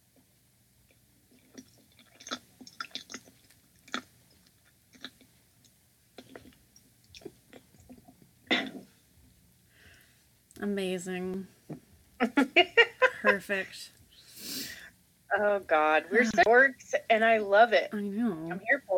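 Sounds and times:
woman chewing a banana: 0:00.9 - 0:08.3
speech: 0:10.6 - 0:11.6, 0:12.2 - 0:14.0, 0:15.4 - 0:18.9.

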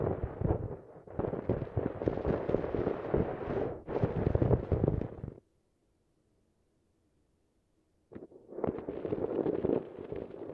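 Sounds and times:
harsh crackling and popping: 0:00.0 - 0:05.4, 0:08.1 - 0:10.5.

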